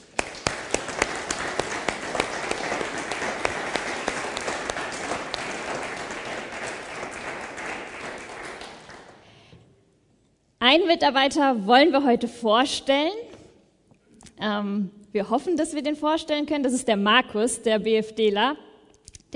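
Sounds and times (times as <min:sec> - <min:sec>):
applause: 0:00.0 - 0:09.5
speech: 0:10.7 - 0:13.2, 0:14.4 - 0:18.7.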